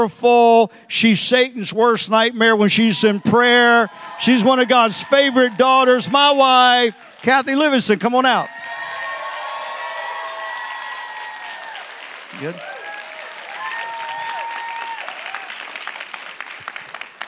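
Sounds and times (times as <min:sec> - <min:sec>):
speech: 0:00.0 - 0:08.8, 0:12.4 - 0:12.7
audience applause and cheering: 0:02.7 - 0:17.2.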